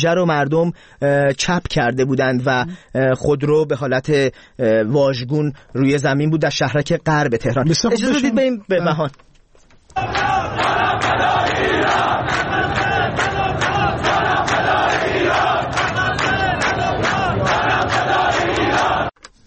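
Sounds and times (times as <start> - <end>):
speech: 0.0 - 9.3, 10.0 - 10.4
large protest crowd chanting slogans: 10.0 - 19.2.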